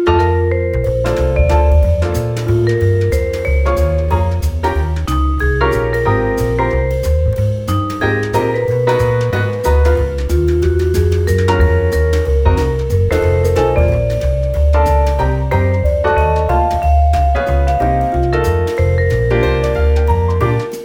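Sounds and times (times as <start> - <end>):
vibraphone: 0.2 - 20.6.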